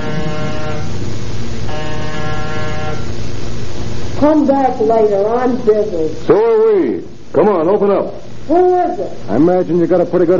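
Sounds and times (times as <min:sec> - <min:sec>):
apartment door buzzer being pushed: 0:00.0 - 0:03.4
speech: 0:04.2 - 0:10.3.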